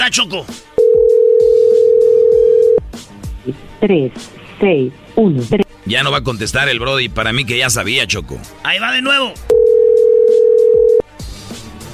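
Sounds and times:
speech: 0.0s - 0.8s, 3.4s - 9.5s
telephone ringing tone: 0.8s - 2.8s, 9.5s - 11.0s.

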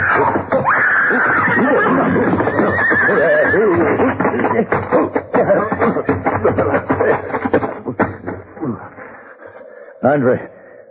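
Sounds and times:
mountain lion screaming: 0.0s - 4.2s
laughter: 1.1s - 10.2s
speech: 10.1s - 10.5s.

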